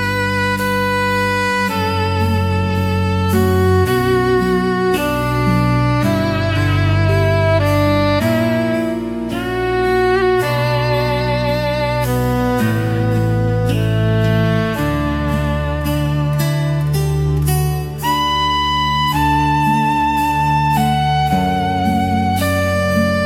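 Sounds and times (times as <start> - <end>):
instrumental Christmas hymn: 0.0 - 23.2.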